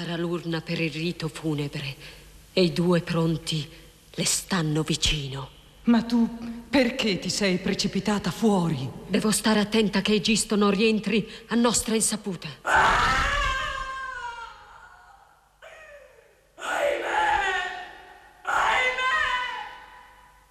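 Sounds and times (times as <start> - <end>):
speech: 0.0 - 13.4
person screaming inside a palace: 12.6 - 20.1.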